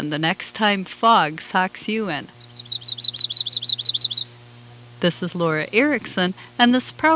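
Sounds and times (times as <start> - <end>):
speech: 0.0 - 2.4, 5.0 - 7.1
low hum: 2.3 - 7.1
yellow-rumped warbler song: 2.4 - 4.4.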